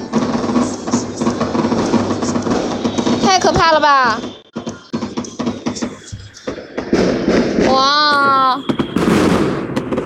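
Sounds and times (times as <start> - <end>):
fireworks and firecrackers exploding: 0.0 - 10.0
speech: 3.6 - 4.3.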